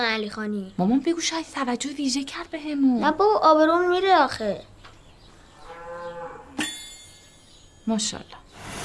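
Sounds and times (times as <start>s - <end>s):
speech: 0.0s - 4.7s, 7.9s - 8.4s
cow mooing at a cattle farm: 5.6s - 6.6s.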